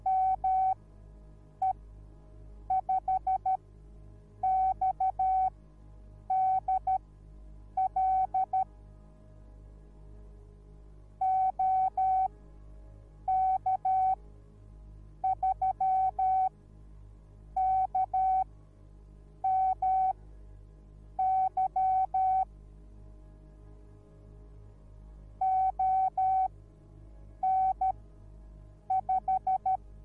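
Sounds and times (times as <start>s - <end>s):
morse code beeps: 0.0s - 0.8s, 2.7s - 3.6s, 4.4s - 5.5s, 6.3s - 7.0s, 7.8s - 8.7s, 11.2s - 12.3s, 13.3s - 14.2s, 15.2s - 16.5s, 17.6s - 18.4s, 19.4s - 20.1s, 21.2s - 22.4s, 25.4s - 26.5s, 27.4s - 27.9s, 28.9s - 29.8s.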